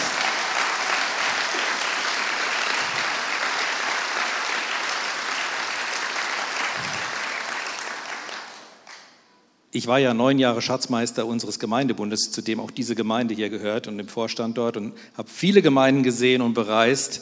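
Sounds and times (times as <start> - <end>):
audience applause: 0.0 - 9.1
speech: 9.8 - 17.2.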